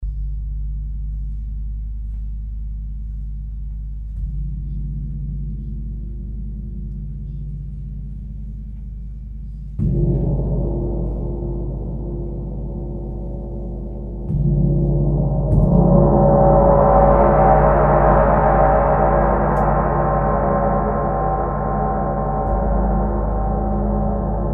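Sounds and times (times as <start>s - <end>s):
gong: 4.2s - 24.5s.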